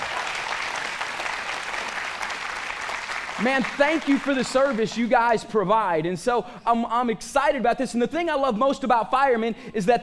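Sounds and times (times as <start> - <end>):
audience applause: 0.0 - 5.1
speech: 3.4 - 10.0.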